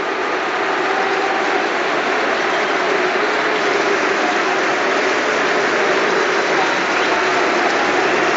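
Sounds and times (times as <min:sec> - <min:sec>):
large stadium crowd booing: 0:00.0 - 0:08.3.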